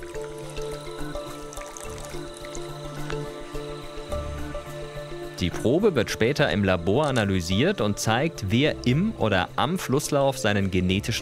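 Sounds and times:
water pressed through syringe filter: 0.0 - 3.8
speech: 5.4 - 11.1.

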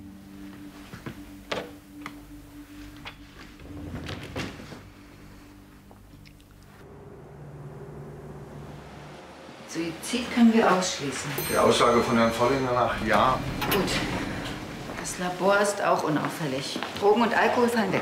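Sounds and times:
speech: 9.8 - 14.2, 15.2 - 17.9
door closing: 11.8 - 15.4.

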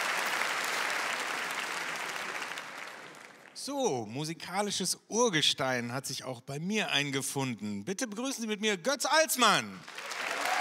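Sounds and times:
audience applause: 0.0 - 3.6, 9.8 - 10.5
speech: 3.6 - 10.1.

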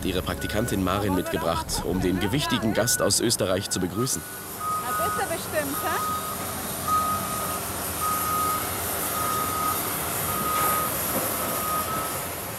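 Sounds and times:
forklift reversing alarm beeps: 0.0 - 1.8, 2.5 - 12.4
speech: 0.0 - 6.3
constant low rumble of engine noise: 0.0 - 12.5.

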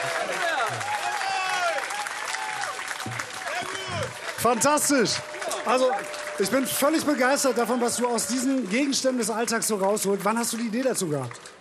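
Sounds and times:
whoops and cheering voices: 0.0 - 9.1
audience applause: 0.0 - 11.5
speech: 4.4 - 11.5.

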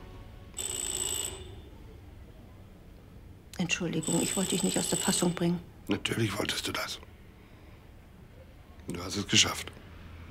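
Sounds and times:
low hum: 0.0 - 10.2
telephone ringing: 0.6 - 1.8, 4.0 - 5.6
speech: 3.6 - 7.1, 8.9 - 9.8.

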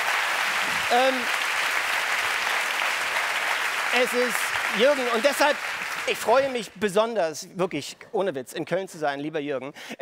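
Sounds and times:
audience applause at a comedy show in Cologne: 0.0 - 6.7
speech: 0.9 - 1.4, 3.9 - 10.0.

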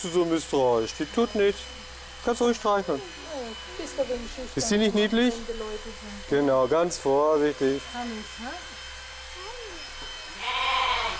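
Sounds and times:
speech: 0.0 - 8.8
loud electric buzzing: 0.0 - 11.1
lamb bleating: 10.4 - 11.1.

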